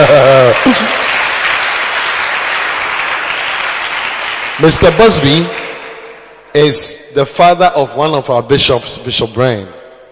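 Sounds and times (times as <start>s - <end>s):
audience clapping in church: 0.0s - 6.5s
speech: 4.6s - 5.6s, 6.6s - 9.8s.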